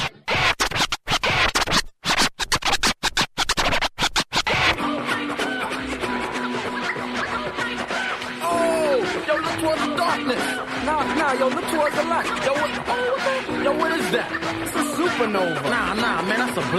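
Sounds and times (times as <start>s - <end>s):
turntable record scratching: 0.0s - 16.7s
music: 4.4s - 16.7s
speech: 11.3s - 16.7s.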